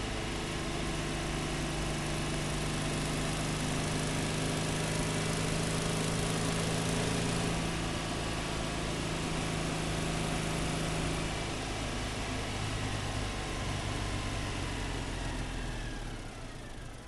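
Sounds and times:
Citroen 2CV engine on a country drive: 0.0s - 17.0s.

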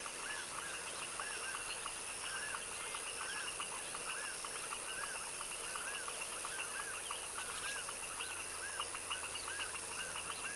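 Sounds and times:
foaming frog chorus in a tropical wetland swamp at dusk: 0.0s - 10.5s.

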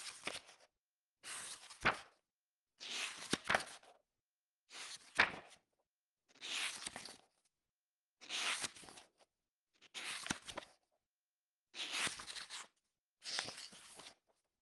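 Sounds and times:
regular book pages flipping: 0.0s - 2.2s, 2.9s - 4.0s, 4.7s - 5.6s, 6.4s - 7.4s, 8.3s - 9.2s, 9.9s - 10.8s, 11.8s - 14.2s.

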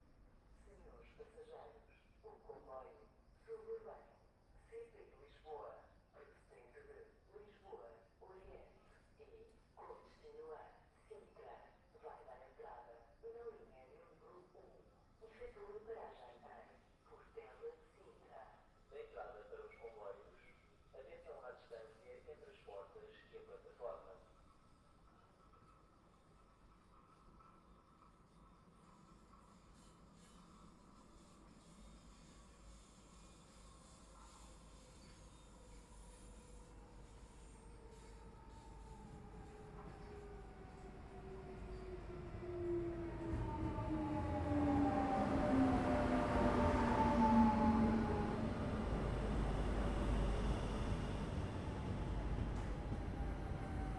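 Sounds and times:
train arriving and departing: 23.2s - 53.9s.

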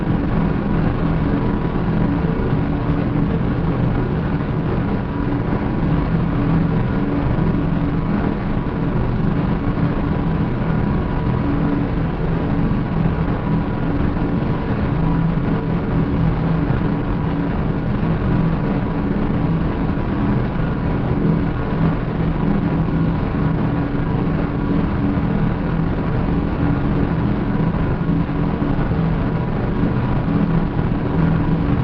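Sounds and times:
planetary exterior drone: 0.0s - 31.8s.

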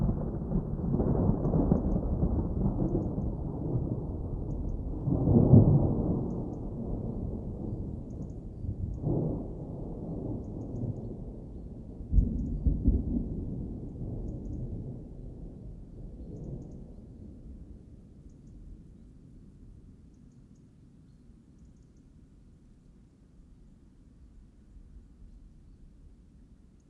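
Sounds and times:
summer thunderstorm in a mountain forest: 0.0s - 18.9s.

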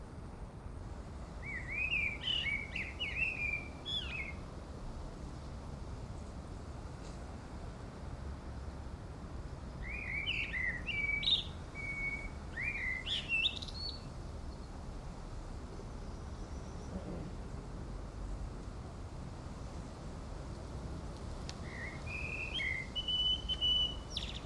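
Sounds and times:
wind on the top of a mountain in Erice, Sicily, Italy: 0.0s - 24.4s
birds on a mountain top in Erice, Sicily, Italy: 1.4s - 4.4s, 9.8s - 14.8s, 15.7s - 18.5s, 21.5s - 24.4s
people chatting briefly on a mountain top in Erice, Sicily, Italy: 16.9s - 17.5s.

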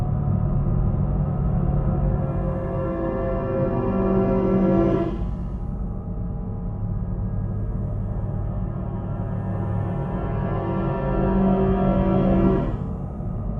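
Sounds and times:
tense upright piano drone: 0.0s - 13.5s.

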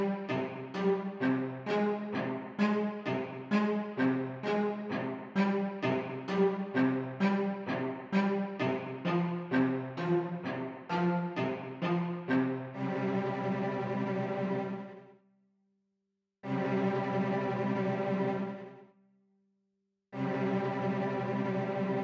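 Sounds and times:
orchestra cello: 0.0s - 15.1s, 16.4s - 18.8s, 20.2s - 22.0s.

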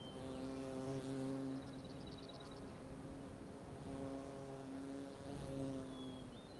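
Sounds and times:
fly buzzing: 0.1s - 6.4s.

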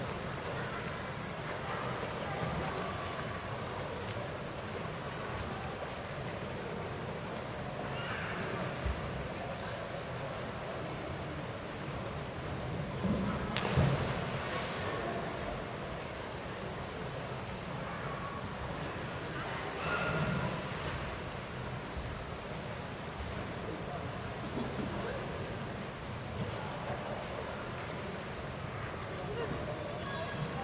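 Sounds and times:
indoor swimming pool ambience: 0.0s - 30.6s.

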